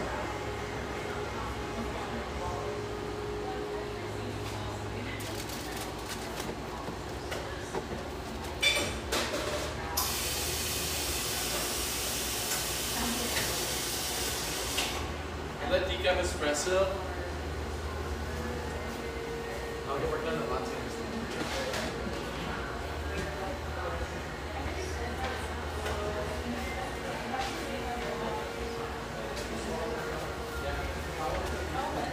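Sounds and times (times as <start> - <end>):
murmur of voices in a busy café in a ski town: 0.0 - 32.1
clinks and knocks of cups and dishes: 8.6 - 9.7.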